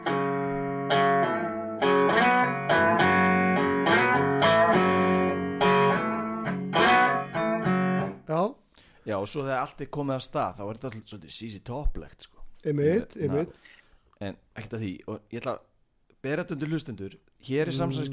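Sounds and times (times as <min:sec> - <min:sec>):
distorted blues rock guitar riff: 0:00.0 - 0:08.2
speech: 0:09.2 - 0:18.1.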